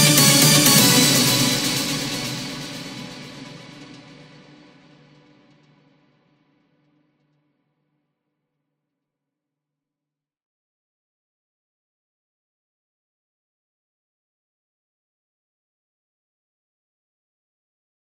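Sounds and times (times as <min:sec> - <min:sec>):
eurodance italo disco dub mix: 0:00.0 - 0:04.0.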